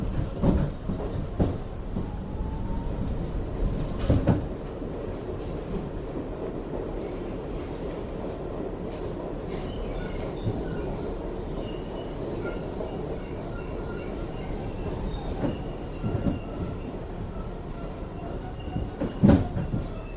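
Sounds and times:
3 train rumbling between Clark Street and Atlantic Avenue in Brooklyn: 0.0 - 20.1
faint high squeals: 9.5 - 20.1.

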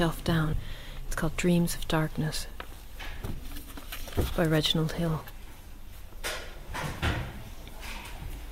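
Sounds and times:
speech: 0.0 - 2.5, 3.2 - 3.4, 4.2 - 5.3
book being opened to a page: 2.6 - 5.4.

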